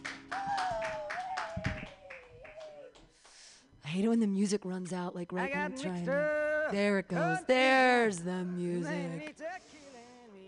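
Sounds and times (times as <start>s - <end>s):
audience clapping for comedian: 0.0s - 3.5s
speech: 3.9s - 9.7s.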